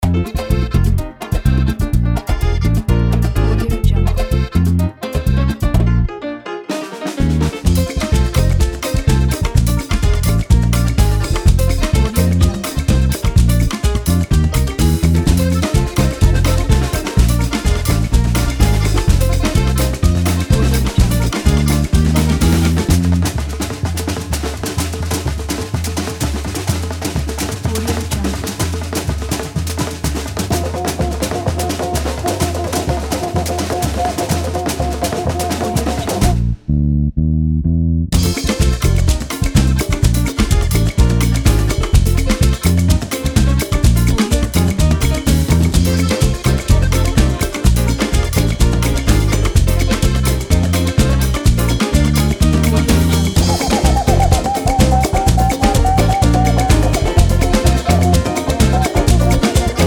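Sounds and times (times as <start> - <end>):
latin party music: 0.0 - 37.0, 38.1 - 59.8.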